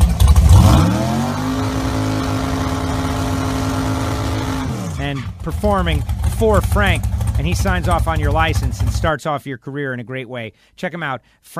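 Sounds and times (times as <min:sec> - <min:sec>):
dragster engine revving: 0:00.0 - 0:09.1
speech: 0:05.5 - 0:11.5.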